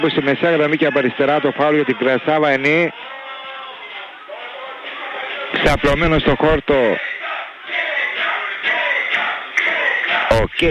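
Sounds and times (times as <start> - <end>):
speech: 0.0 - 3.2, 5.6 - 7.1, 10.4 - 10.7
stadium crowd of home fans chanting a player's name: 2.9 - 10.7.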